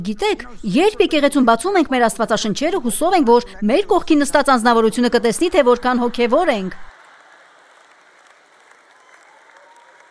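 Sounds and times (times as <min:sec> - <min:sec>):
speech: 0:00.0 - 0:06.9
applause from a church congregation: 0:06.8 - 0:10.0.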